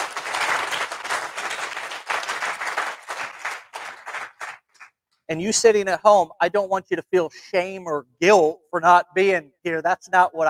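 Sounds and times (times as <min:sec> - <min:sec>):
audience applause: 0:00.0 - 0:04.9
speech: 0:05.3 - 0:10.4.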